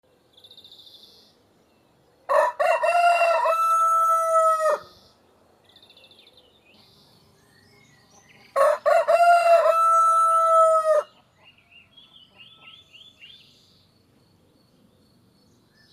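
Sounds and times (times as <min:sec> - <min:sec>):
rooster crowing with long sustained ending: 0:02.3 - 0:04.9, 0:08.6 - 0:11.1.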